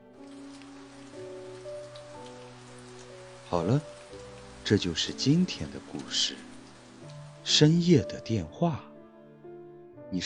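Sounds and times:
rain pattering outside window: 0.0 - 8.6
speech: 3.5 - 4.0, 4.7 - 6.5, 7.4 - 8.9.

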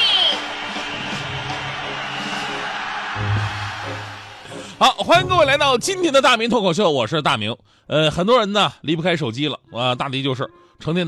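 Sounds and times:
crowd applauding and cheering: 0.0 - 4.9
low musical tone: 3.2 - 5.8, 9.6 - 11.0
speech: 4.8 - 11.0.

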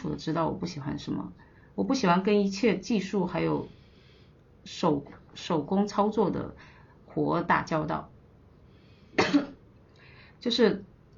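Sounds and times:
speech: 0.0 - 3.8, 4.6 - 8.1, 9.3 - 9.6, 10.4 - 10.9
person coughing: 9.2 - 9.6.

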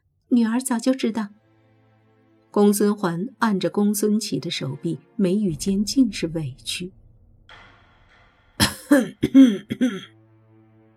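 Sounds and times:
speech: 0.3 - 1.4, 2.6 - 7.6, 9.0 - 10.2
person coughing: 8.6 - 10.1.

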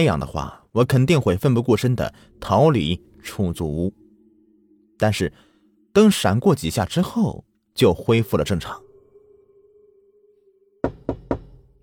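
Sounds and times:
speech: 0.0 - 4.0, 5.0 - 8.8
knocking on a door: 10.8 - 11.6.

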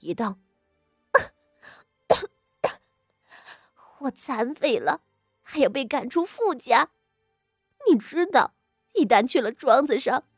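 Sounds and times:
speech: 0.0 - 0.4, 4.0 - 7.0, 7.8 - 10.3
person coughing painfully: 1.2 - 1.4, 2.1 - 2.8.

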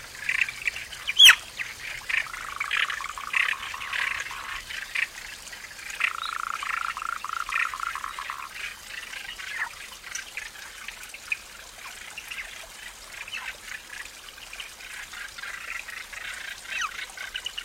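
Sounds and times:
autumn stream water babbling: 0.0 - 17.6.

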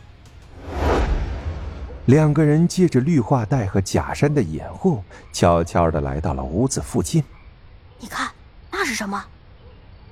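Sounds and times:
jet of flame whooshing: 0.5 - 2.4
speech: 2.1 - 7.4, 8.0 - 8.3, 8.9 - 9.4.

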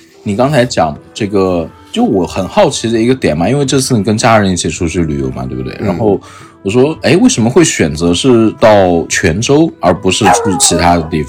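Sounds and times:
speech: 0.2 - 11.2
dog barking: 10.2 - 11.1.

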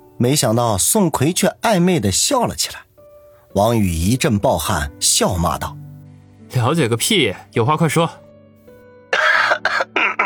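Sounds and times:
speech: 0.2 - 2.9, 3.6 - 5.9, 6.5 - 8.2
person coughing: 9.1 - 10.2.

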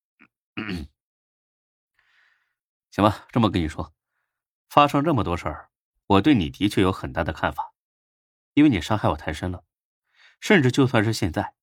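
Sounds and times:
speech: 0.2 - 0.9, 3.0 - 4.0, 4.7 - 7.7, 8.6 - 9.7, 10.4 - 11.6
person coughing awkwardly: 0.6 - 0.9.

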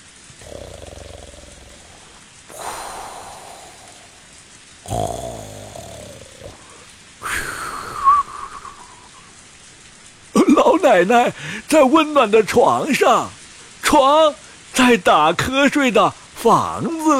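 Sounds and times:
snoring: 0.3 - 7.5
speech: 10.9 - 17.1.

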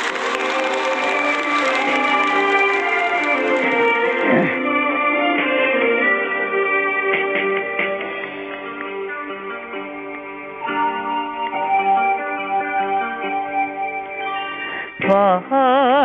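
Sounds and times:
audience clapping: 0.0 - 4.8, 7.3 - 11.6
sustained instrumental music: 0.0 - 16.0.

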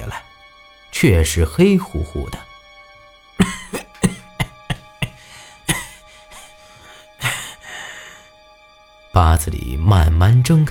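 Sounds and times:
speech: 1.0 - 2.4, 9.4 - 10.6
short dry coughs and a raspy cough: 3.4 - 7.6.

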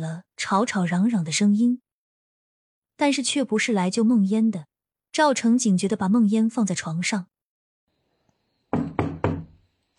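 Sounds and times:
speech: 0.0 - 1.9, 3.0 - 7.4
knocking on a door: 8.7 - 9.6.

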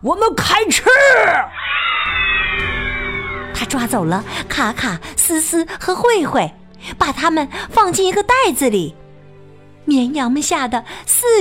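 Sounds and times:
speech: 0.0 - 2.6, 3.7 - 9.0, 9.8 - 11.4
wolf howling: 1.0 - 3.9.

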